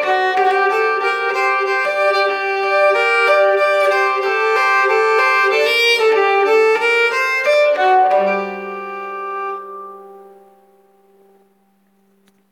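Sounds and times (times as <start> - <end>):
nyckelharpa playing polska from Skane: 0.0 - 11.6.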